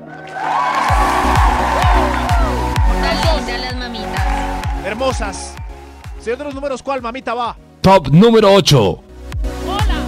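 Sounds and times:
audience applauding and cheering: 0:00.0 - 0:06.9
music with a regular thumping bass beat: 0:00.9 - 0:06.7
speech: 0:05.0 - 0:05.6, 0:06.2 - 0:09.0.

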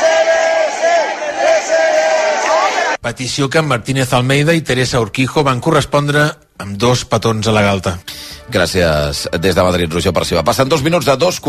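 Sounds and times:
wedding guests shouting cheers for the newlyweds outside a church: 0:00.0 - 0:03.0
speech: 0:03.0 - 0:11.4.

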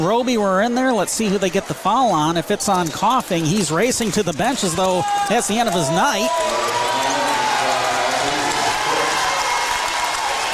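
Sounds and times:
speech: 0:00.0 - 0:07.2
student section cheering and applauding: 0:04.6 - 0:10.5.

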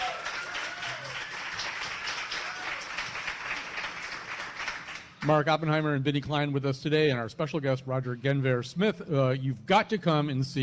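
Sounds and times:
faint applause from a live audience at the 2015 Festival of Arts and Ideas: 0:00.0 - 0:05.4
speech: 0:05.2 - 0:10.6.

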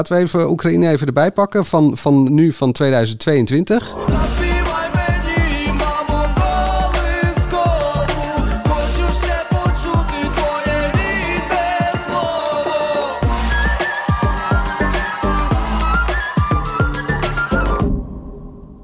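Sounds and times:
speech: 0:00.0 - 0:04.4
loud pop song with punchy beats and whistled melody: 0:04.1 - 0:18.0.

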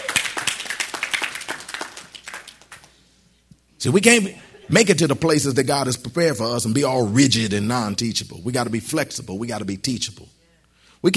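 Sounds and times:
audience clapping: 0:00.0 - 0:03.1
speech: 0:03.8 - 0:10.4.

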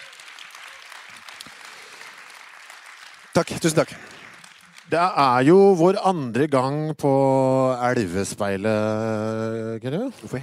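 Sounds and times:
small crowd clapping: 0:00.0 - 0:05.9
speech: 0:03.4 - 0:04.2, 0:04.9 - 0:10.4.

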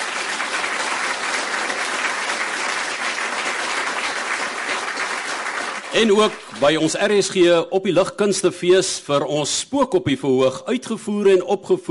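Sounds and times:
audience applause: 0:00.0 - 0:07.2
speech: 0:06.0 - 0:11.8.

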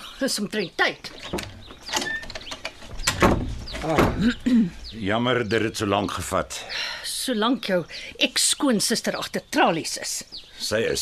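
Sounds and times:
speech: 0:00.2 - 0:02.1, 0:03.8 - 0:11.0
door latch and hinges clicking and scraping as a door opens: 0:01.1 - 0:04.3
clunk and rustle: 0:01.1 - 0:04.5.

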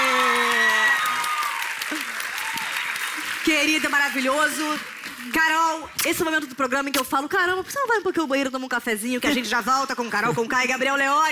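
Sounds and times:
audience applause: 0:00.0 - 0:05.8
speech: 0:03.4 - 0:11.3.

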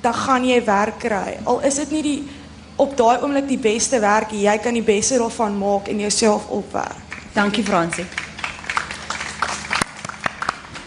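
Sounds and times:
speech: 0:00.0 - 0:08.2
audience applause: 0:07.1 - 0:10.8.

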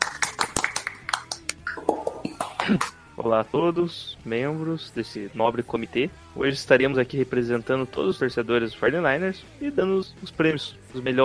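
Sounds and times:
applause: 0:00.0 - 0:03.0
speech: 0:02.7 - 0:11.2.

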